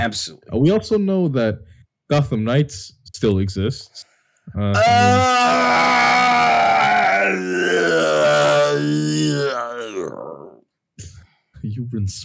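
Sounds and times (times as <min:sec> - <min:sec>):
speech: 0:00.0 - 0:06.2, 0:11.7 - 0:12.2
person groaning: 0:04.7 - 0:10.6.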